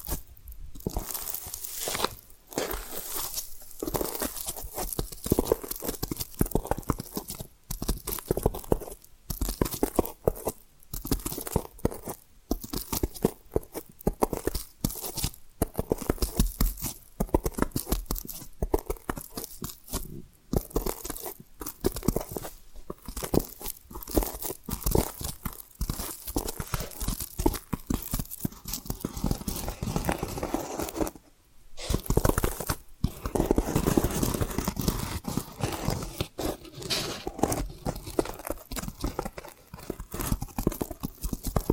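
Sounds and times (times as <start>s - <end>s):
tapping and scratching: 0.0s - 41.7s.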